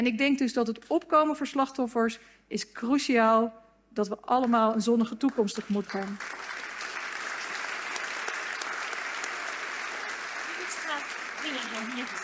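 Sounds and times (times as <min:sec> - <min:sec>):
speech: 0:00.0 - 0:06.6
audience applause: 0:05.3 - 0:12.2.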